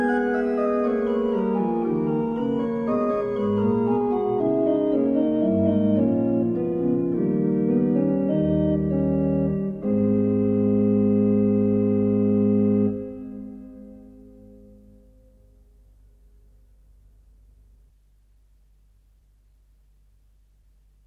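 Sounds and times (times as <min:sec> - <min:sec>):
organ mass: 0:00.0 - 0:15.2.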